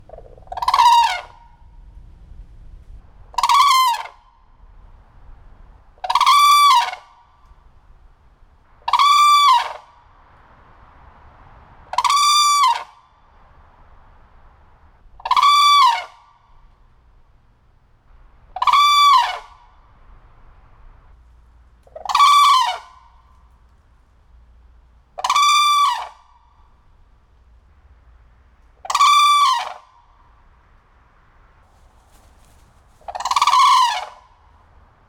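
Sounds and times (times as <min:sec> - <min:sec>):
red-crowned crane calling: 0:00.0 - 0:01.6, 0:03.2 - 0:04.6, 0:05.8 - 0:07.8, 0:08.6 - 0:10.5, 0:11.8 - 0:21.1, 0:21.8 - 0:23.7, 0:25.1 - 0:27.2, 0:28.7 - 0:30.5, 0:32.1 - 0:34.8.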